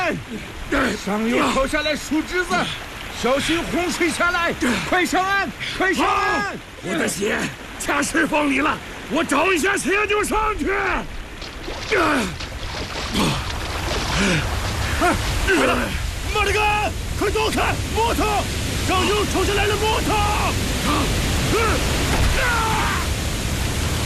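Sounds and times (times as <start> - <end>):
river flood water rushing down from upstream: 0.0 - 24.0
people shouting urgently: 15.0 - 23.2.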